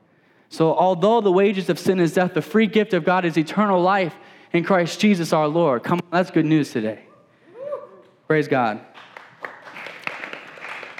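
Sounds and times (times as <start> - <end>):
speech: 0.5 - 7.1, 8.3 - 8.9
small group clapping: 8.9 - 10.9.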